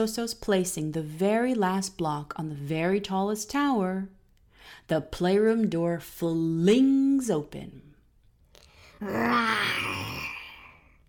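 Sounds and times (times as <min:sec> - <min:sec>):
speech: 0:00.0 - 0:07.8, 0:09.0 - 0:10.2
voice imitating a saber-toothed tiger cub's roar: 0:09.0 - 0:10.8.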